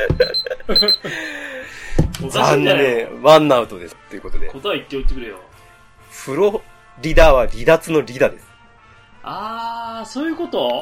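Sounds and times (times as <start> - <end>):
speech: 0.1 - 1.3, 2.2 - 5.5, 6.2 - 8.5, 9.2 - 10.8
kitchen timer ringing during a quiz game: 0.2 - 1.0.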